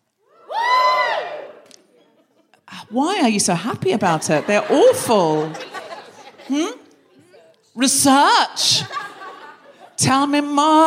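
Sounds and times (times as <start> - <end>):
comedy show audience whooping cheers: 0.3 - 1.7
laughter: 1.8 - 2.6, 4.0 - 7.0, 8.6 - 10.0
speech: 2.9 - 5.7, 6.5 - 6.8, 7.8 - 9.0, 10.0 - 10.8.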